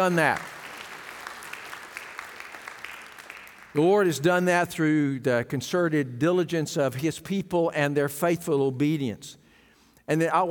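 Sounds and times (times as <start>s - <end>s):
speech: 0.0s - 0.5s, 3.7s - 9.4s, 10.1s - 10.4s
church congregation clapping their hands in praise: 0.0s - 4.2s.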